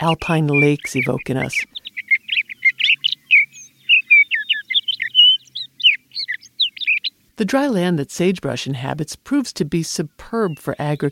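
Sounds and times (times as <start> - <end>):
speech: 0.0 - 1.8, 7.4 - 11.0
sage thrasher singing: 0.0 - 7.1.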